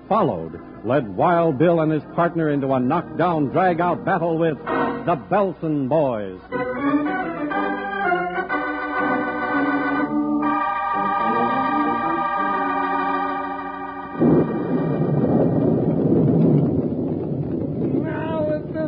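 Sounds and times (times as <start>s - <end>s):
harmonic music-like tones: 0.0s - 17.0s
speech: 0.1s - 7.0s
heavy storm wind: 14.1s - 18.8s.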